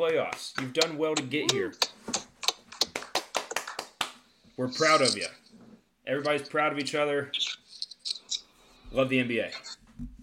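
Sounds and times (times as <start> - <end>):
clapping: 0.0 - 1.9, 2.5 - 4.2
speech: 0.0 - 2.0, 4.6 - 5.5, 6.1 - 7.5, 8.9 - 10.1.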